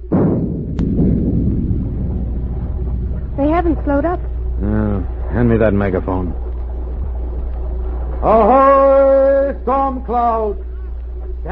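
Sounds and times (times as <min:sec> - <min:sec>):
ship's forward gun firing a shot: 0:00.0 - 0:07.9
speech: 0:03.6 - 0:06.4, 0:08.2 - 0:10.7.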